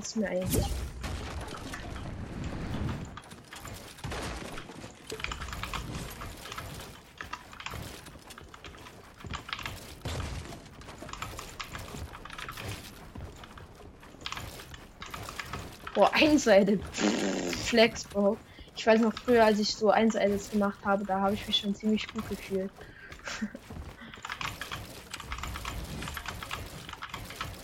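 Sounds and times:
speech: 0.0s - 1.0s, 16.1s - 23.8s
rapid computer keyboard key presses: 4.8s - 10.0s, 10.8s - 16.9s, 18.0s - 27.6s
laughter: 23.2s - 23.6s.

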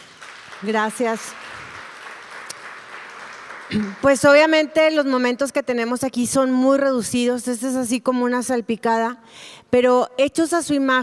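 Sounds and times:
audience applause: 0.0s - 4.3s
speech: 0.6s - 1.4s, 3.7s - 11.0s.

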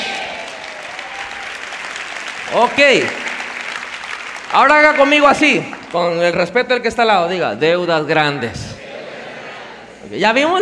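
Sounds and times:
audience applause: 0.0s - 6.3s
speech: 2.5s - 3.2s, 4.5s - 8.7s, 10.0s - 10.6s.

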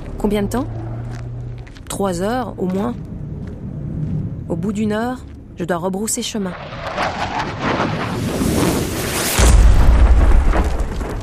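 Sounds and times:
windy roar: 0.0s - 11.2s
speech: 0.3s - 0.8s, 2.0s - 3.1s, 4.5s - 7.3s
heavy explosion from an air strike on a convoy: 6.6s - 11.2s.

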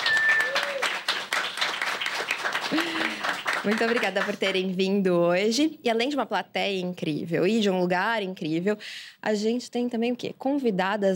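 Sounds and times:
audience cheering: 0.0s - 3.5s
audience applause: 0.0s - 4.6s
speech: 3.6s - 11.1s.

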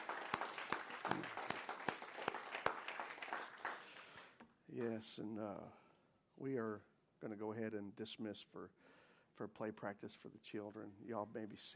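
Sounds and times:
group applauding in appreciation: 0.0s - 4.9s
speech: 4.8s - 5.8s, 6.4s - 11.7s.

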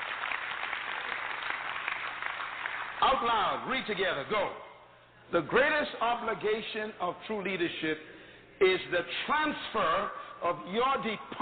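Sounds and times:
audience clapping: 0.0s - 3.6s
speech: 3.1s - 4.6s, 5.3s - 11.4s.

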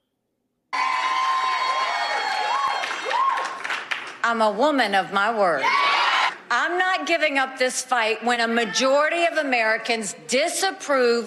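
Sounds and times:
crowd cheering with high-pitched shrill voices: 0.7s - 3.6s, 5.6s - 6.4s
rising whoops: 0.8s - 3.6s
speech: 4.3s - 5.8s, 6.6s - 11.2s.

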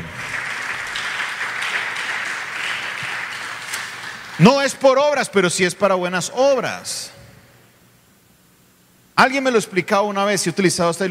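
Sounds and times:
audience applause: 0.0s - 4.5s
speech: 4.4s - 7.2s, 9.2s - 11.1s.

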